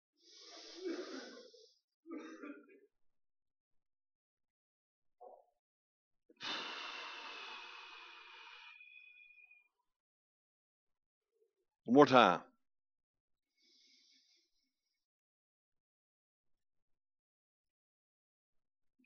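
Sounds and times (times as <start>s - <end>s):
group breathing in deeply and exhaling during a sermon: 0.2s - 2.6s, 6.4s - 9.6s
speech: 11.9s - 12.5s.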